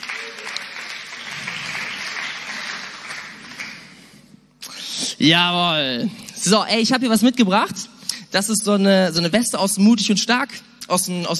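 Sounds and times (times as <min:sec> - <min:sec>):
audience applause: 0:00.0 - 0:04.0
speech: 0:05.2 - 0:11.3.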